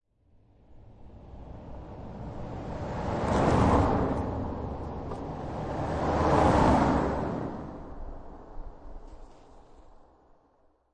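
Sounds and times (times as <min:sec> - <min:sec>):
two cars passing on gravel: 0:01.6 - 0:09.6.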